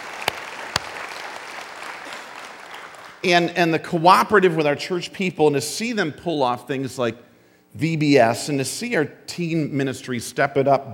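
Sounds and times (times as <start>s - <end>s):
audience applause: 0.0s - 3.2s
speech: 3.2s - 10.9s.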